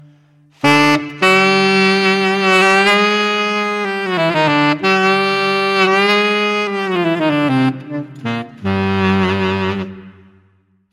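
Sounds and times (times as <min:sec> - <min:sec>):
two saxophones playing: 0:00.0 - 0:10.4.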